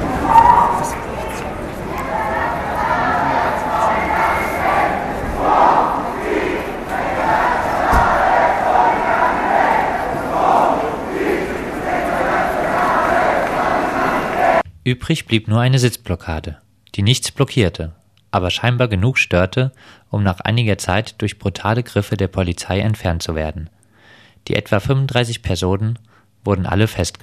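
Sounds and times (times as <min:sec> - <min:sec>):
protest crowd kettled by police shouting and chanting: 0:00.0 - 0:14.6
speech: 0:14.9 - 0:23.8, 0:24.4 - 0:27.2.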